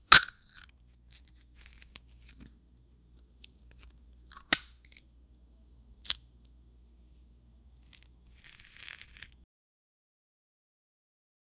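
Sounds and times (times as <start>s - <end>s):
crinkling while opening: 0.1s - 2.5s, 7.8s - 9.4s.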